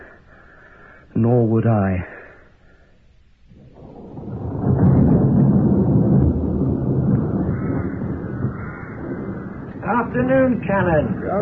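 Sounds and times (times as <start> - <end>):
storm wind: 0.0 - 11.4
speech: 1.2 - 2.2, 10.2 - 11.4
thunder: 3.5 - 11.4.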